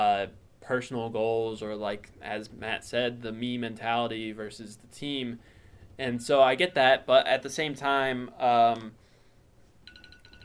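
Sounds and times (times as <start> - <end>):
speech: 0.0 - 9.0
phone alarm beeping: 9.8 - 10.4.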